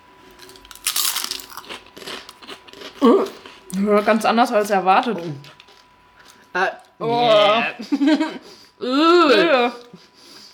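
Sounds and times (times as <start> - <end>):
biting into a green spinach-like vegan snack: 0.2 - 3.8, 5.2 - 6.9
speech: 3.0 - 5.5, 6.6 - 9.8
laughter: 7.0 - 8.6.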